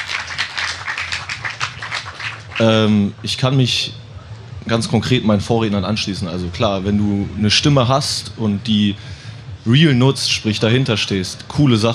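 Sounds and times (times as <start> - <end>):
crowd applause: 0.0 - 3.0
speech: 2.6 - 4.0, 4.6 - 11.9.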